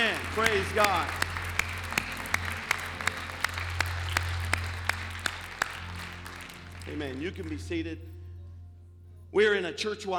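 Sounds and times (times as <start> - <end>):
audience clapping hands in praise: 0.0 - 7.8
speech: 0.2 - 1.2, 6.9 - 8.2, 9.3 - 10.1.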